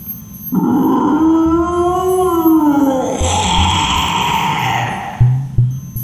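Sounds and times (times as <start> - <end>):
dragon roaring: 0.5 - 5.6.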